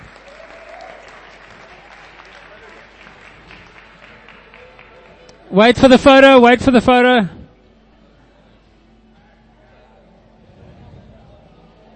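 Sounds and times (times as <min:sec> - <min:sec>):
audience applause: 0:00.0 - 0:05.3
speech: 0:05.5 - 0:07.4.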